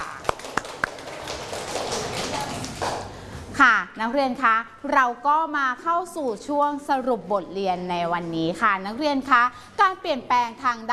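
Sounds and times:
classroom applause: 0.0 - 3.1
speech: 3.6 - 10.9.

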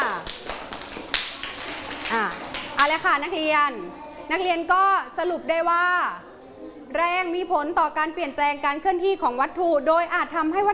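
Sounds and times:
students clapping for a classmate during a lesson: 0.0 - 3.3
speech: 2.9 - 6.3, 6.9 - 10.7.

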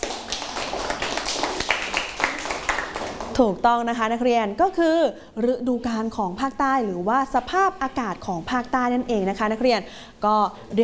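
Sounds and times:
students clapping for a classmate: 0.0 - 3.4
speech: 3.4 - 10.8.

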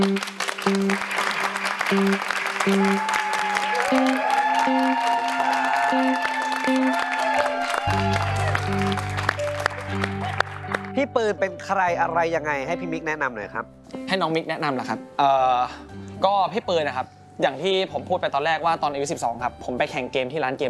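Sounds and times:
audience applause: 0.0 - 11.0
upbeat music: 0.0 - 15.6
speech: 1.9 - 3.1, 3.9 - 5.0, 11.0 - 20.6.

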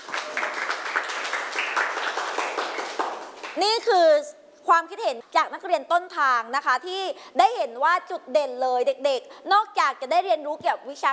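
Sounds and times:
group applauding for two students: 0.0 - 3.6
speech: 3.6 - 11.1.

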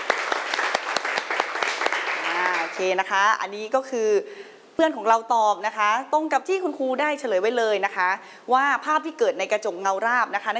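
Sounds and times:
classroom clapping: 0.0 - 2.9
speech: 2.8 - 10.5.

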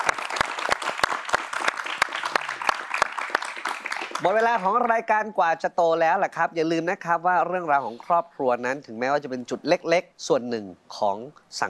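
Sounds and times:
audience applause: 0.0 - 4.9
speech: 4.2 - 11.6.

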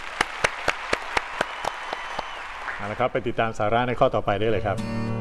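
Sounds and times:
hand claps: 0.0 - 3.0
speech: 2.8 - 5.1.

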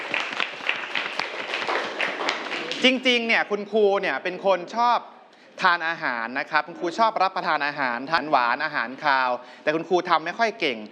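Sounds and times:
scattered hand clapping for a student in a class: 0.0 - 3.1
speech: 2.8 - 10.9.

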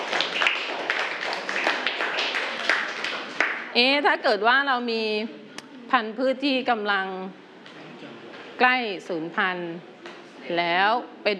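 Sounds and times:
group of people clapping: 0.0 - 3.8
speech: 3.8 - 7.4, 8.6 - 9.9, 10.5 - 11.3.

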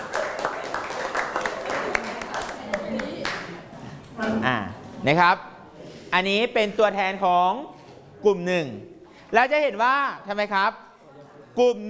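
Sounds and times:
classroom applause: 0.0 - 3.6
speech: 4.2 - 5.5, 6.1 - 10.8, 11.6 - 11.8.

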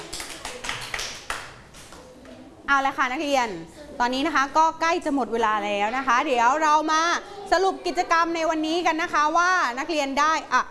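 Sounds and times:
students clapping hands: 0.0 - 2.4
speech: 2.7 - 10.6.

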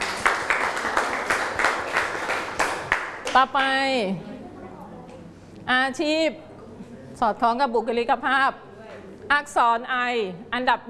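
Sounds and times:
students clapping for a classmate: 0.0 - 3.4
speech: 3.4 - 4.3, 5.7 - 6.5, 7.2 - 8.7, 9.3 - 10.8.

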